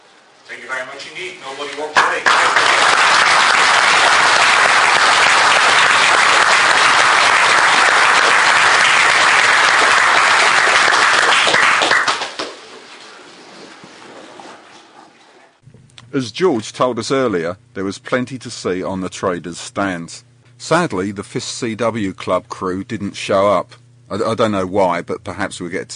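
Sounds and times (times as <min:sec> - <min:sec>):
speech: 0:00.4 - 0:02.7, 0:16.0 - 0:25.9
audience applause: 0:01.9 - 0:12.6.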